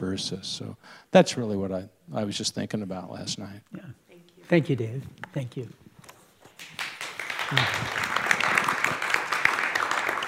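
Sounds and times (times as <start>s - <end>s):
speech: 0.0s - 5.8s, 7.5s - 8.1s
audience clapping: 6.4s - 10.2s.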